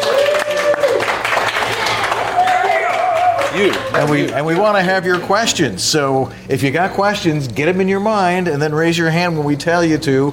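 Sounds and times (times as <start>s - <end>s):
cheers and whoops: 0.0s - 4.0s
live audience clapping: 0.0s - 5.2s
speech: 3.6s - 10.3s.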